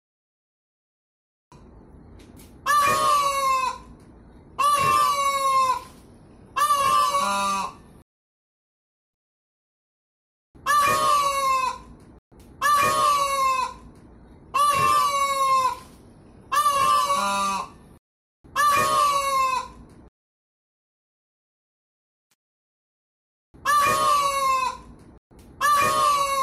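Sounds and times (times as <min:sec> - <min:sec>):
peafowl braying calls: 0:02.6 - 0:04.0, 0:04.6 - 0:07.8, 0:10.6 - 0:12.0, 0:12.6 - 0:17.8, 0:18.5 - 0:19.9, 0:23.6 - 0:25.0, 0:25.6 - 0:26.4.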